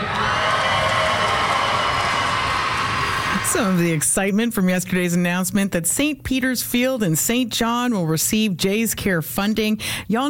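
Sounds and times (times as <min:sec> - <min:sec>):
crowd cheering: 0:00.0 - 0:04.0
speech: 0:03.5 - 0:10.2.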